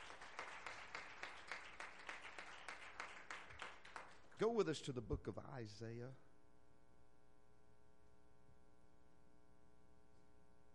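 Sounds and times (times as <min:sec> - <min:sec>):
audience hand clapping of praise: 0:00.0 - 0:04.8
speech: 0:04.4 - 0:06.3.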